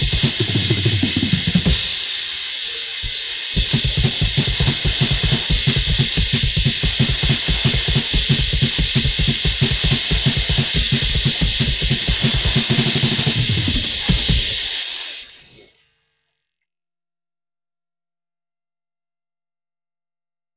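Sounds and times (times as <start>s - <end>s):
drums: 0.0s - 15.8s.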